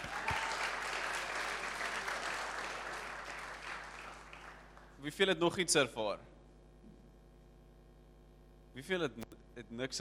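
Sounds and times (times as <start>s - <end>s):
audience clapping hands: 0.0s - 5.0s
speech: 5.0s - 6.3s, 8.8s - 9.9s.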